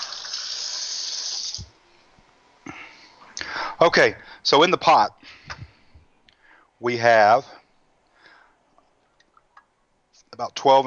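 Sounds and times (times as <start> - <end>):
tap water running over hands being rinsed: 0.0 - 1.8
speech: 3.8 - 5.2, 6.8 - 7.5, 10.4 - 10.8.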